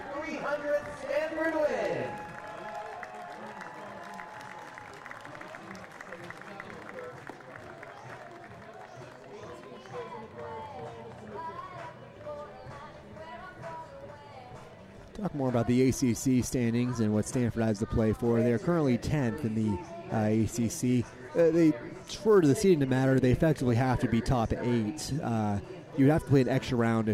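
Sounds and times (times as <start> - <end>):
speech: 0.4 - 2.3, 15.2 - 27.1
crowd applause: 0.8 - 11.5.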